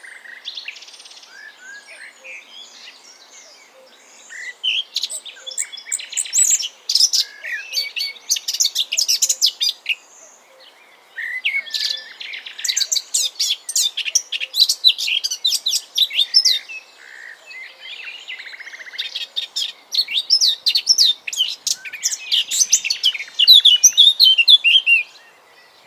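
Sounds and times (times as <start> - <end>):
Eurasian blackcap song: 4.3 - 10.0, 11.2 - 16.9, 17.7 - 25.2.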